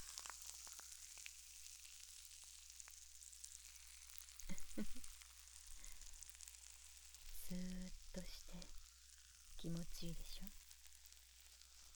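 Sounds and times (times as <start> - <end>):
fizzing, crackling foam bubbles near ear: 0.0 - 11.9
speech: 4.5 - 5.1, 7.5 - 8.8, 9.6 - 10.6.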